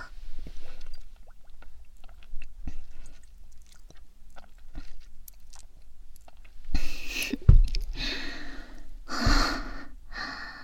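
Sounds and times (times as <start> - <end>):
chewing and mouth sounds while eating: 0.8 - 8.0.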